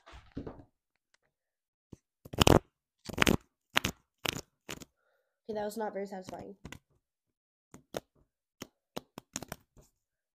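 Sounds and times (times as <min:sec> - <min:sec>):
playing cards shuffling: 0:02.3 - 0:04.9, 0:06.3 - 0:06.9, 0:07.8 - 0:10.0
speech: 0:05.5 - 0:06.8.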